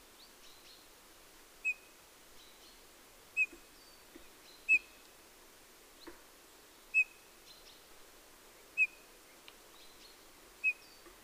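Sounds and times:
Eurasian bullfinch Pyrrhula pyrrhula giving short piped calls: 1.6 - 1.9, 4.6 - 5.0, 6.9 - 7.3, 8.8 - 9.0, 10.6 - 11.2.

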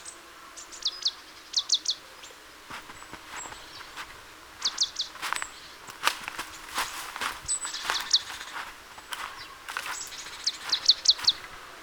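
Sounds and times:
marsh tit Poecile palustris calling: 0.7 - 11.8.

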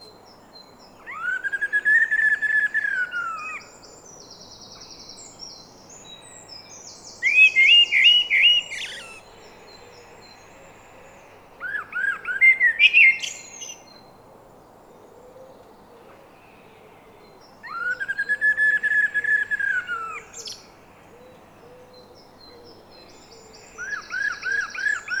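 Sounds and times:
Eurasian blackbird singing: 1.0 - 10.1, 11.7 - 13.9, 17.6 - 20.7, 21.9 - 25.1.

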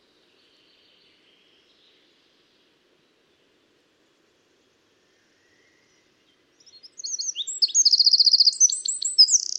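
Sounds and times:
Eurasian wren singing, Troglodytes troglodytes: 6.8 - 9.5.

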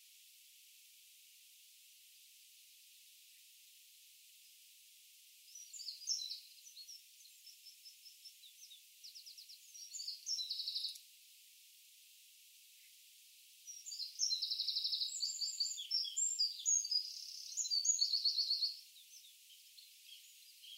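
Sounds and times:
Eurasian wren song: 5.4 - 11.1, 12.7 - 20.7.

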